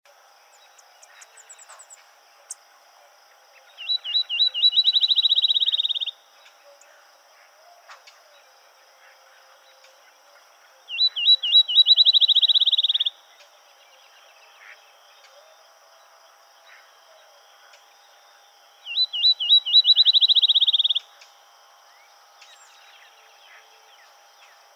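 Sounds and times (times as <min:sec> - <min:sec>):
field sparrow singing: 0:03.8 - 0:06.1, 0:10.9 - 0:13.1, 0:18.9 - 0:21.0.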